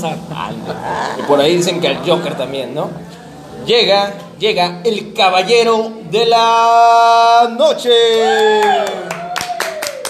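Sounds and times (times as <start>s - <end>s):
speech: 0.0s - 9.2s
audience clapping: 8.1s - 10.0s.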